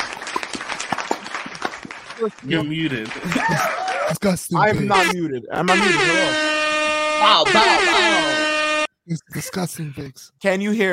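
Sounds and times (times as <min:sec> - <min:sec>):
clapping sound effect: 0:00.0 - 0:04.0
speech: 0:02.2 - 0:06.5, 0:07.2 - 0:08.3, 0:09.1 - 0:10.9
laughter: 0:02.5 - 0:05.2, 0:07.4 - 0:08.4.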